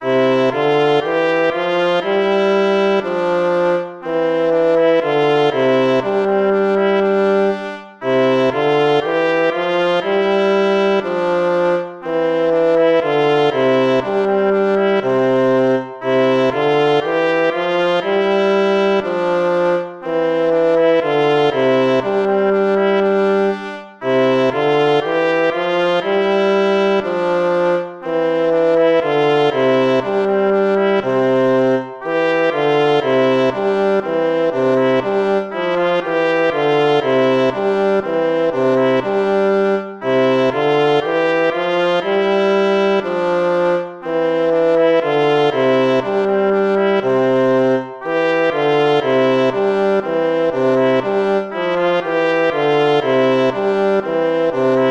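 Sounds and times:
gavotte music: 0:00.0 - 0:54.9.

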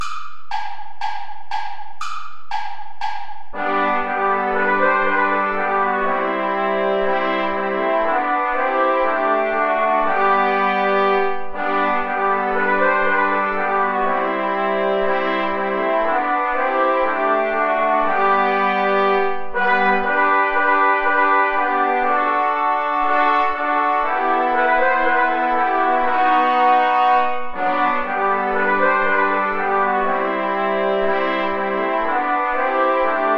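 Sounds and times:
play-along backing music without trombone: 0:00.0 - 0:33.3.

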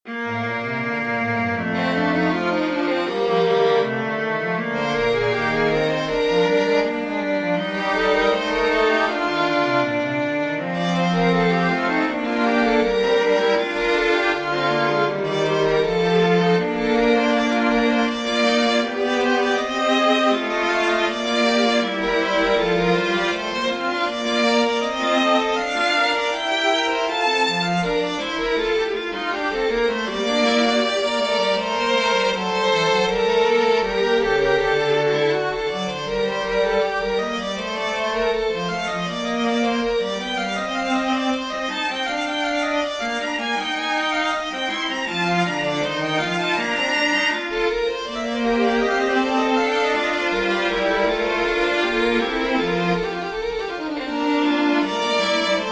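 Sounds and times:
string trio chorale: 0:00.1 - 0:55.7.

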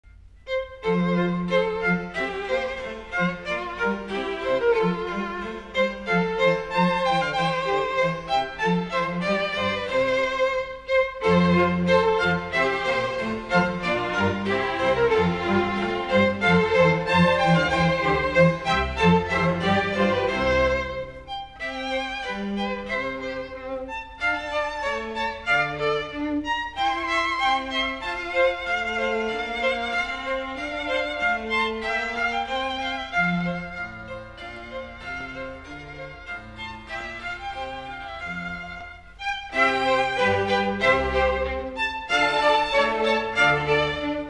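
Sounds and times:
gavotte: 0:00.0 - 0:44.2.

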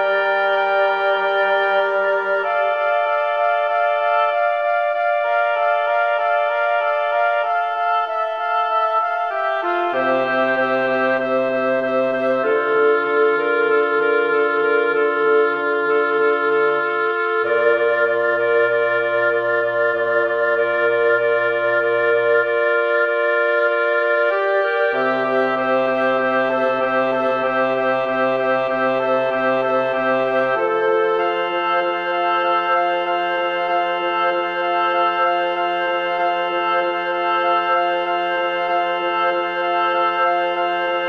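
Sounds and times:
woodwind quartet playing a birdsong piece: 0:00.0 - 0:41.0.

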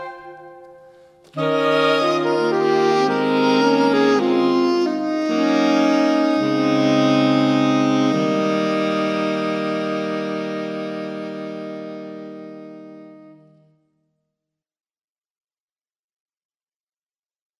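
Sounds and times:
saxophone quartet playing a carol variation: 0:00.0 - 0:13.6.

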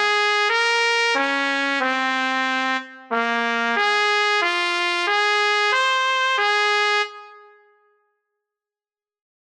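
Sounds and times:
trumpet playing a polonaise: 0:00.0 - 0:07.5.

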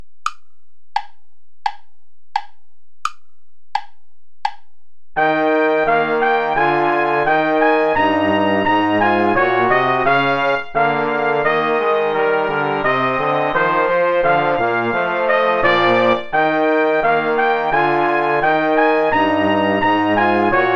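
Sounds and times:
play-along backing music without trumpet: 0:05.2 - 0:20.7.

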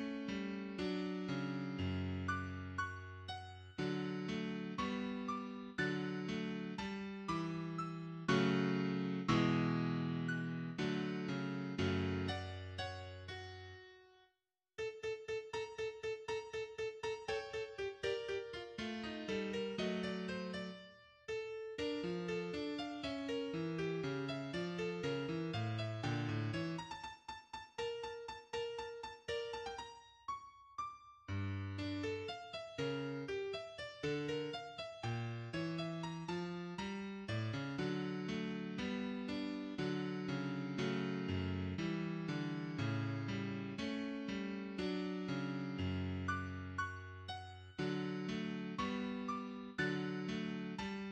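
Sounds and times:
minimal piano solo: 0:00.1 - 0:13.9, 0:14.8 - 0:51.1.

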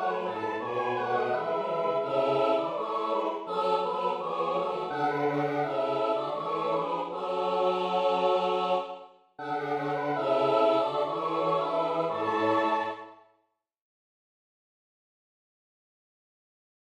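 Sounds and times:
Christmas carol: 0:00.0 - 0:13.2.

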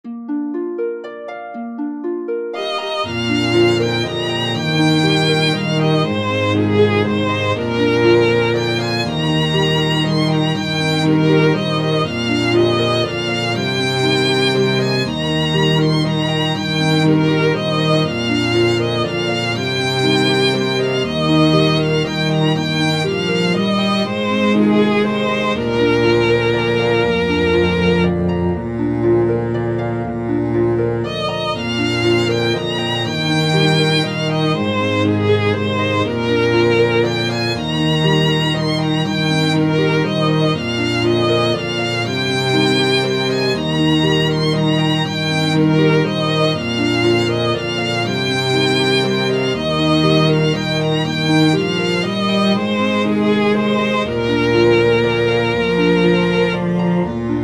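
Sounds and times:
harp strings: 0:00.0 - 0:57.4.

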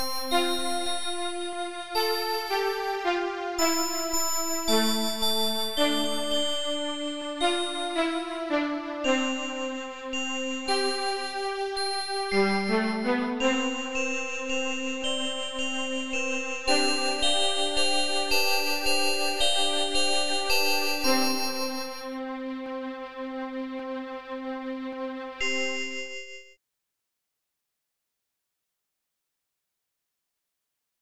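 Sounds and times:
glockenspiel: 0:00.0 - 0:22.2, 0:25.4 - 0:26.6
violin: 0:00.0 - 0:25.9.

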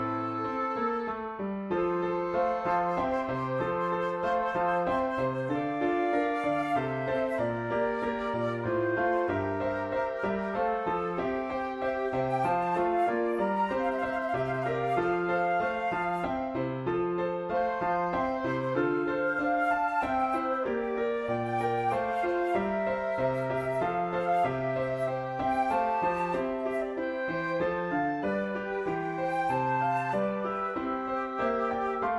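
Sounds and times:
flute: 0:00.0 - 0:32.1
oboe: 0:00.0 - 0:32.1
piano: 0:00.0 - 0:32.1.

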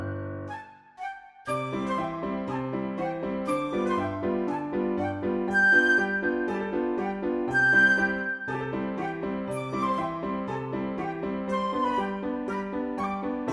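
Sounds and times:
flute: 0:00.0 - 0:13.5
piano: 0:00.0 - 0:13.5.

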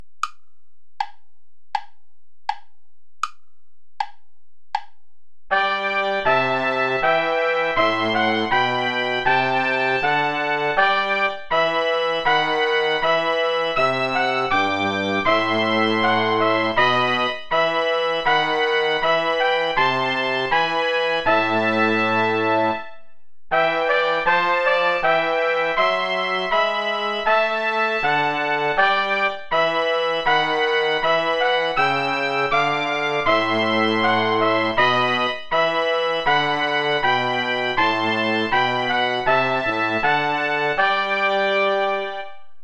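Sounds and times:
play-along backing music without trombone: 0:05.5 - 0:42.5.

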